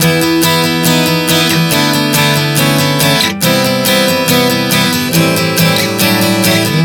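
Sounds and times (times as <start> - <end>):
acoustic guitar chord progressions: 0.0 - 6.8.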